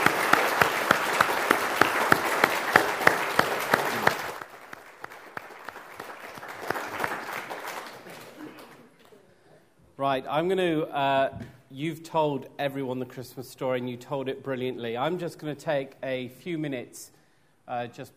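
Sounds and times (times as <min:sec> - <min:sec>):
crowd applauding: 0:00.0 - 0:09.0
speech: 0:10.0 - 0:18.1.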